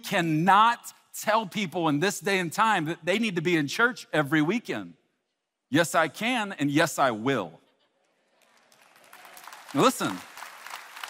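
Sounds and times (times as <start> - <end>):
speech: 0.0 - 5.0, 5.7 - 7.6, 9.7 - 10.3
audience applause: 8.4 - 11.0.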